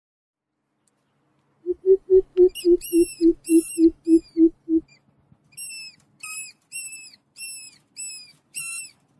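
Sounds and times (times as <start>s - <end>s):
Greater coucal hooting: 1.7s - 4.9s.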